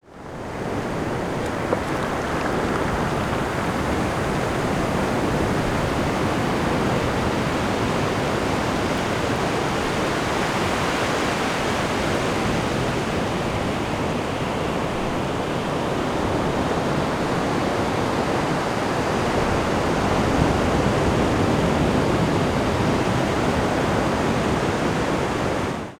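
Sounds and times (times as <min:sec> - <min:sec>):
surf waves: 0:00.1 - 0:25.9.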